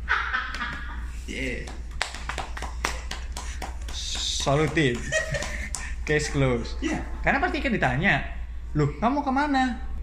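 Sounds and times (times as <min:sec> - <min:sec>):
hands clapping: 0:00.5 - 0:06.0
speech: 0:01.3 - 0:01.9, 0:04.0 - 0:05.4, 0:06.1 - 0:10.0
laughter: 0:04.8 - 0:06.0.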